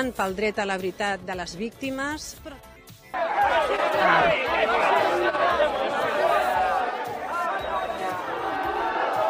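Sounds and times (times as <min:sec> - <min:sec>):
speech: 0:00.0 - 0:05.8
crowd shouting protest chants: 0:03.2 - 0:09.2.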